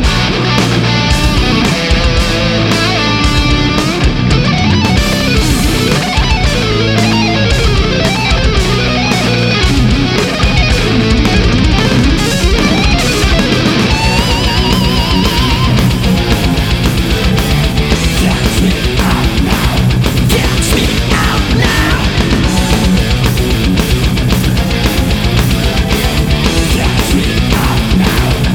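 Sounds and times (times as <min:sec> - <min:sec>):
modern high gain distorted guitar: 0:00.0 - 0:28.5.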